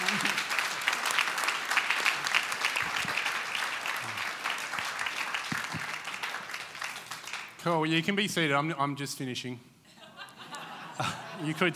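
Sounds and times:
laughter: 0:00.0 - 0:00.5, 0:09.9 - 0:11.7
audience round of applause: 0:00.0 - 0:07.6
speech: 0:07.6 - 0:09.7, 0:11.0 - 0:11.7.

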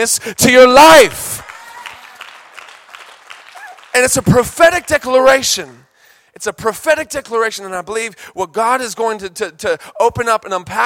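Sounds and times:
speech: 0:00.0 - 0:01.4, 0:04.0 - 0:10.8
audience clapping: 0:01.0 - 0:05.8.

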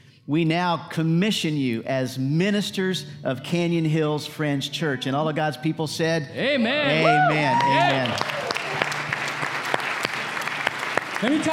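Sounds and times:
speech: 0:00.3 - 0:08.4, 0:11.2 - 0:11.5
audience clapping: 0:07.2 - 0:11.5.

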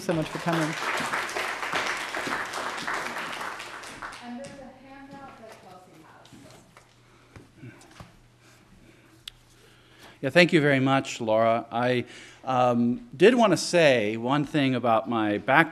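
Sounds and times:
speech: 0:00.0 - 0:01.2, 0:10.2 - 0:15.7
audience applause welcoming a guest lecturer: 0:00.0 - 0:04.6.

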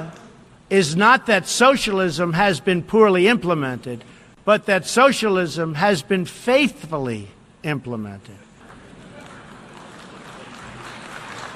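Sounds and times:
speech: 0:00.7 - 0:08.5
faint small applause: 0:08.6 - 0:11.5
soft murmur of crowd noise: 0:08.6 - 0:11.5.

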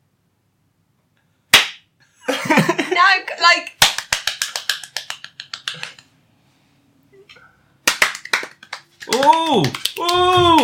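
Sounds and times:
hand clap: 0:01.5 - 0:01.9, 0:03.7 - 0:06.0, 0:07.8 - 0:10.6
speech: 0:03.0 - 0:03.8, 0:09.1 - 0:10.6.

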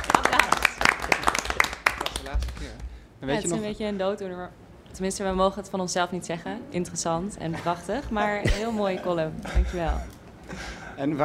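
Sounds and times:
clapping: 0:00.0 - 0:02.9
speech: 0:02.6 - 0:11.2.

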